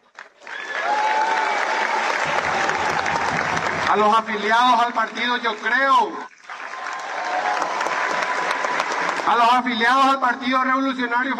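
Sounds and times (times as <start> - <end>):
audience applause: 0.0 - 9.7
faint cheering: 0.4 - 4.0, 6.6 - 9.1
speech: 3.9 - 6.3, 9.3 - 11.3.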